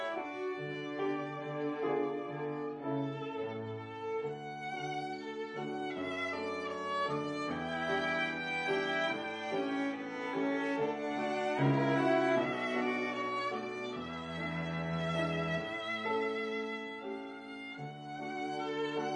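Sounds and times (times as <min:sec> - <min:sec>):
piano trio playing: 0:00.0 - 0:19.1.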